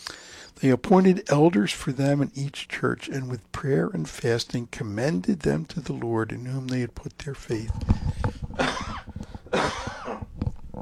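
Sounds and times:
speech: 0:00.6 - 0:08.0
residual cough: 0:08.6 - 0:10.3.

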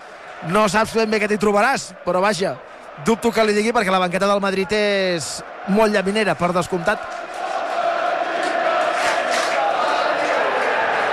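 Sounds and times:
stadium crowd roaring as a football match ends: 0:00.0 - 0:11.1
speech: 0:00.4 - 0:07.2.

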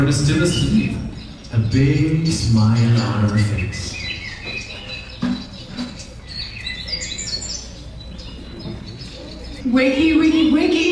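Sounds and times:
speech: 0:00.0 - 0:04.0, 0:09.7 - 0:10.9
birds singing in the morning: 0:00.0 - 0:10.9.

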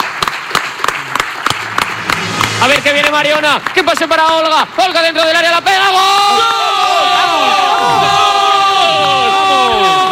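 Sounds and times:
audience applause: 0:00.0 - 0:05.0, 0:07.4 - 0:10.0
speech: 0:02.6 - 0:08.2.

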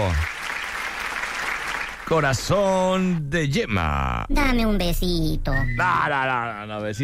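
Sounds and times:
speech: 0:00.0 - 0:00.3, 0:02.1 - 0:07.0
applause from a small group: 0:00.0 - 0:02.8.

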